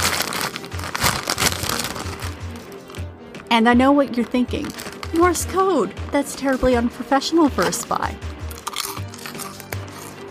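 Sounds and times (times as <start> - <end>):
chip bag crinkling and rustling while eating chips: 0.0 - 3.1, 4.1 - 5.6, 8.5 - 10.2
speech: 3.5 - 8.3
chewing: 8.5 - 10.2.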